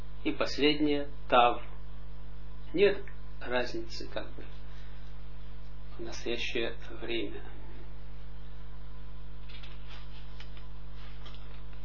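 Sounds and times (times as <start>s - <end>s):
speech: 0.2s - 1.7s, 2.7s - 4.6s, 6.0s - 7.6s
page turning: 9.4s - 11.8s.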